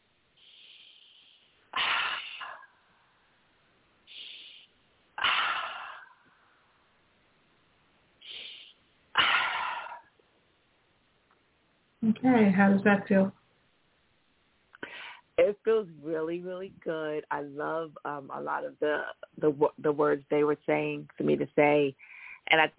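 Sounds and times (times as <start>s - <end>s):
deep breathing during a guided affirmation session: 0.4s - 2.6s, 4.1s - 6.5s, 8.2s - 8.8s, 22.0s - 22.4s
speech: 12.1s - 13.4s, 15.7s - 22.7s.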